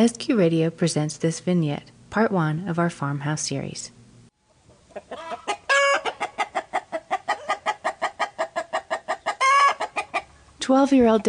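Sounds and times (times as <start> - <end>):
speech: 0.0 - 4.0, 5.0 - 5.5, 10.7 - 11.2
chickens clucking: 4.6 - 11.2
rooster crowing: 5.1 - 10.2.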